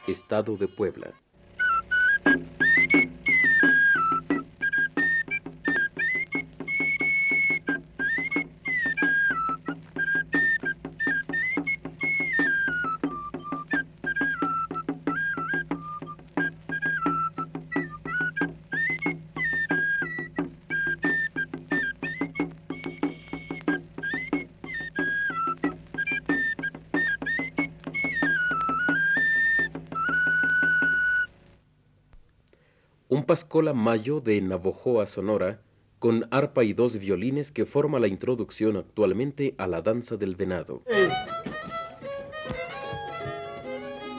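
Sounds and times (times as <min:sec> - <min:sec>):
speech: 0:00.1 - 0:01.2, 0:33.4 - 0:41.4
shrill whistle or flute melody of a Mexican indigenous tiger dance tune: 0:01.6 - 0:31.3
steady drum beat: 0:01.8 - 0:31.4, 0:41.0 - 0:44.1.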